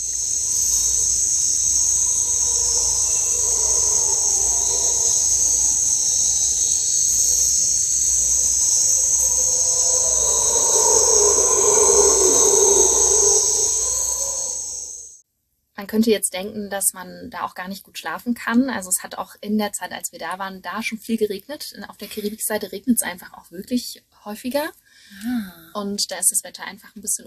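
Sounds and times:
howler monkeys calling loudly in rainforest: 0:00.0 - 0:15.1
speech: 0:15.9 - 0:27.2.

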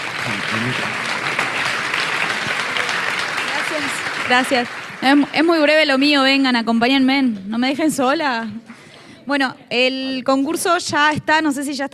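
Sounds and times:
crowd applauding: 0:00.0 - 0:06.2
speech: 0:00.3 - 0:01.1, 0:03.8 - 0:08.7, 0:09.3 - 0:11.9.

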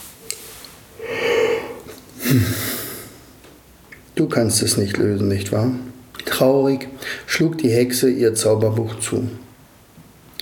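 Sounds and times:
yawning: 0:01.0 - 0:03.1
speech: 0:02.3 - 0:02.7, 0:04.2 - 0:09.4.

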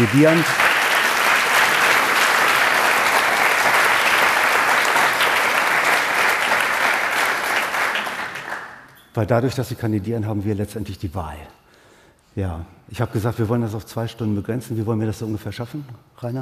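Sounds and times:
speech: 0:00.0 - 0:00.6, 0:09.2 - 0:11.6, 0:12.4 - 0:16.4
audience applause: 0:00.0 - 0:08.9.

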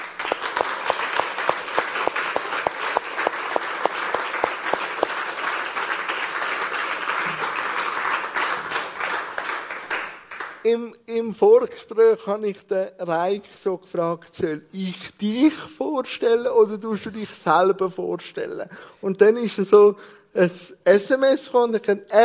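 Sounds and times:
warm applause from audience: 0:00.0 - 0:10.6
speech: 0:10.7 - 0:22.2.

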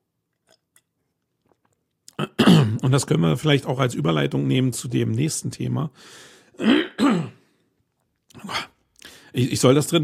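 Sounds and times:
person clearing throat: 0:02.1 - 0:02.9, 0:06.6 - 0:07.5
speech: 0:02.7 - 0:07.3, 0:09.4 - 0:10.0.

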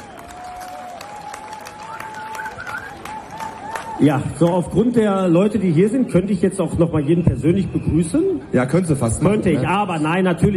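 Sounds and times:
audience applause: 0:00.0 - 0:04.5
speech: 0:04.0 - 0:10.5.

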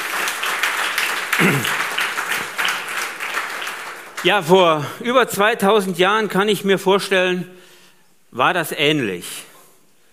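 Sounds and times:
audience applause: 0:00.0 - 0:04.8
speech: 0:04.2 - 0:07.6, 0:08.3 - 0:09.4.

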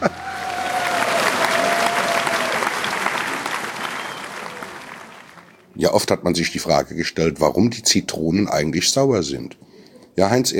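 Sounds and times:
audience applause: 0:00.0 - 0:05.6
speech: 0:05.8 - 0:10.5.

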